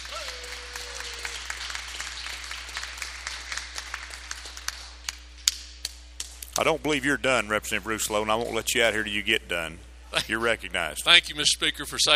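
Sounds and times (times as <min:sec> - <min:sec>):
applause welcoming a town mayor and officials in a state House chamber: 0:00.0 - 0:06.4
speech: 0:06.6 - 0:12.1.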